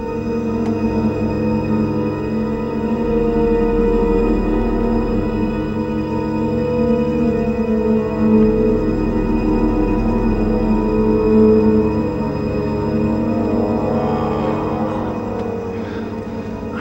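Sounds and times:
dark mood synth pad: 0.0 - 16.7.

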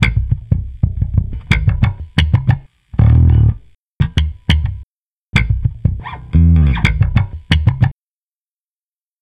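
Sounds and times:
electric bass: 0.0 - 3.7, 5.4 - 7.9.

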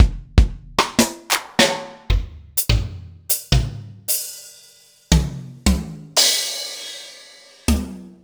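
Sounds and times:
Roland MV8800 power drum kit: 0.0 - 8.2.

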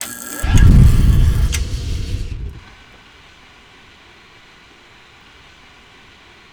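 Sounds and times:
oil furnace running: 0.0 - 2.8.

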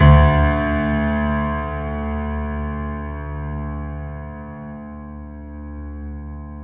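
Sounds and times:
grand piano pedal: 0.0 - 6.6.

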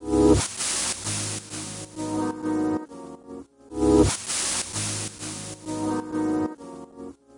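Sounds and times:
effects loop: 0.3 - 2.6, 3.9 - 6.5.

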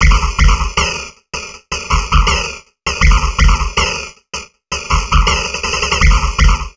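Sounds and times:
heavily processed drum loop: 0.0 - 6.7.

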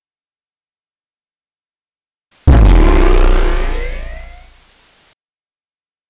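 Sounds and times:
distorted kick drum feedback, sliced: 2.5 - 4.6.

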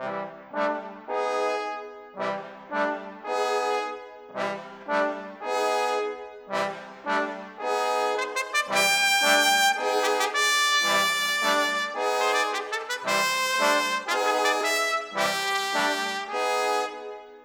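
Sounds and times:
brass instruments: 0.0 - 17.4.

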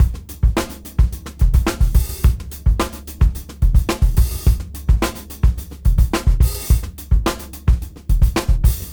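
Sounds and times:
junky funk music at 107 BPM: 0.0 - 8.9.

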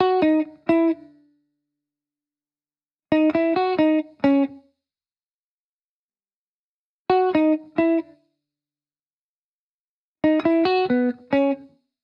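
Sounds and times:
1970s-style guitar in B at 135 BPM: 0.0 - 1.4, 3.1 - 4.7, 7.1 - 8.3, 10.2 - 11.8.

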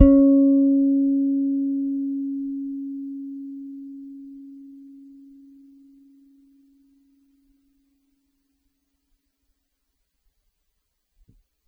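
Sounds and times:
soft bass note on Pedulla Thunderbass: 0.0 - 6.5.

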